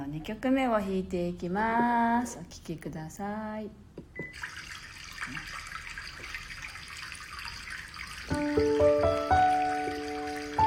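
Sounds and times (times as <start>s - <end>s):
speech: 0.1s - 4.6s
flowing water: 4.2s - 10.6s.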